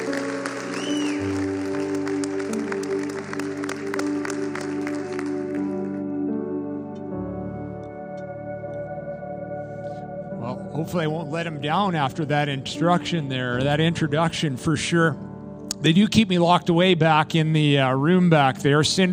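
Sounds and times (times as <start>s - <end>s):
audience applause welcoming a pastor: 0.0s - 6.0s
sustained keyboard chords: 0.0s - 19.1s
speech: 10.8s - 15.2s, 15.8s - 19.1s.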